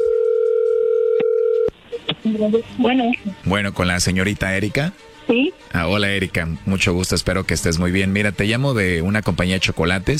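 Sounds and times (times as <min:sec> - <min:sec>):
telephone ringing tone of a call being dialed: 0:00.0 - 0:01.8
speech: 0:02.3 - 0:10.1.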